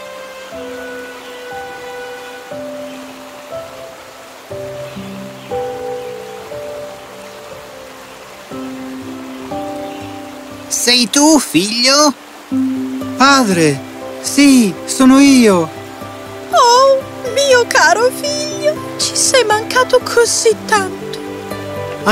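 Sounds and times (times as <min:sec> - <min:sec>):
running water in nature: 0:00.0 - 0:22.1
speech: 0:00.5 - 0:00.9, 0:10.9 - 0:15.8, 0:19.0 - 0:21.0.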